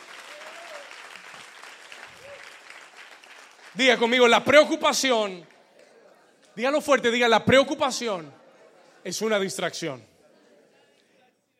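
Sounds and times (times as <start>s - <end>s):
loud applause: 0.0s - 5.7s
speech: 3.8s - 5.5s, 6.6s - 8.4s, 9.0s - 10.1s.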